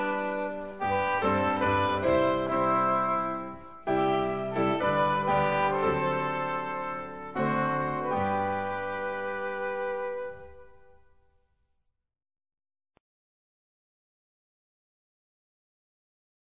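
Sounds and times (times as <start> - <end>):
instrumental music: 0.0 - 11.4.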